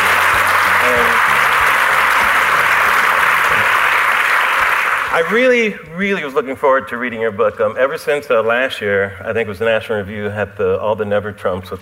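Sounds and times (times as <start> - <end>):
audience applause: 0.0 - 5.8
speech: 5.2 - 11.7.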